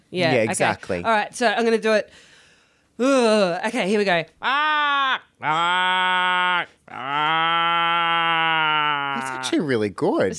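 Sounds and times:
speech: 0.1s - 2.3s, 3.0s - 10.3s
person imitating crow caws: 4.4s - 9.6s.

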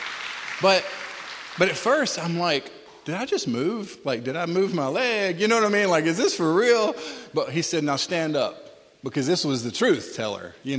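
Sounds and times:
audience clapping: 0.0s - 2.6s
speech: 0.6s - 1.0s, 1.6s - 10.7s.

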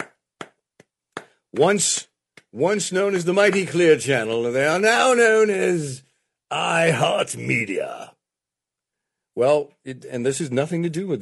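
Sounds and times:
sparse polite golf-style clapping: 0.0s - 2.6s
speech: 1.5s - 8.1s, 9.4s - 11.2s.

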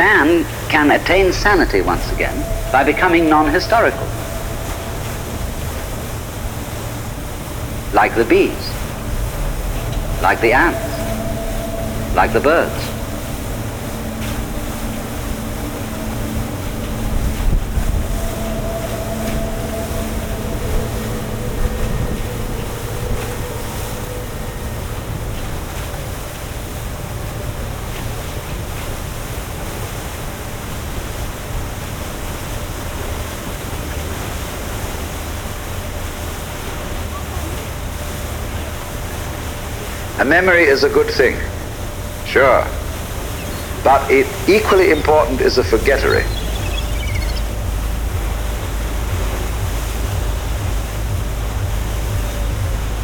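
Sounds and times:
boat moving on water: 0.0s - 53.0s
speech: 0.3s - 4.2s, 8.0s - 8.7s, 10.2s - 10.9s, 12.1s - 12.9s, 40.2s - 41.4s, 42.3s - 42.8s, 43.8s - 46.4s.

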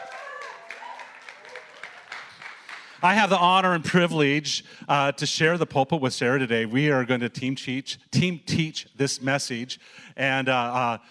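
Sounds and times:
round of applause: 0.0s - 3.1s
speech: 3.0s - 11.0s.

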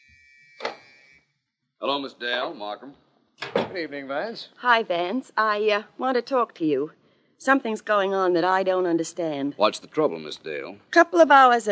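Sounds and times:
door-release wall buzzer: 0.0s - 1.3s
speech: 1.8s - 11.7s.

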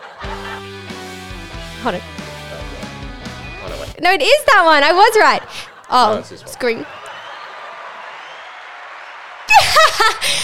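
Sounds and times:
laughter: 0.0s - 0.9s, 5.0s - 10.4s
speech: 1.8s - 2.3s, 4.0s - 7.0s
recorded applause sound effect from mixing board: 6.6s - 10.4s.

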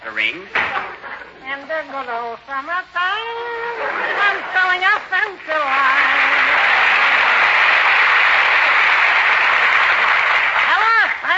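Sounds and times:
speech: 0.2s - 6.3s
audience applause: 3.8s - 11.3s.

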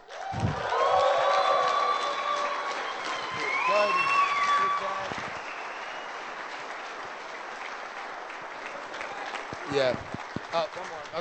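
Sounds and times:
audience applause: 0.0s - 11.1s
speech: 9.8s - 11.1s.

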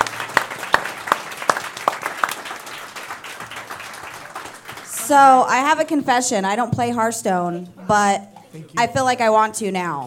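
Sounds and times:
audience applause: 0.0s - 5.4s
speech: 5.1s - 10.0s.

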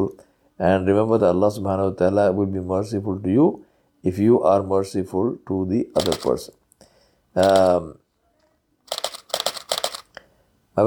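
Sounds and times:
speech: 0.0s - 6.6s, 7.4s - 8.0s
camera shutter clicking while photographing goldfinches on a flowering peach tree: 6.0s - 6.4s, 7.4s - 7.8s, 8.9s - 10.1s.

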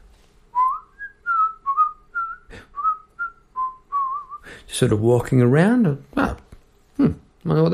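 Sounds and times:
whistled melody: 0.5s - 4.5s
speech: 4.8s - 6.1s, 7.5s - 7.7s.

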